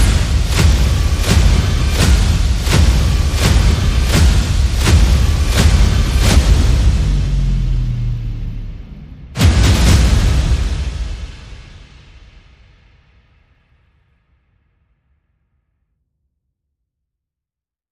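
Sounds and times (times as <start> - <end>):
sound effects: 0.0 - 11.8
percussion: 0.0 - 14.0.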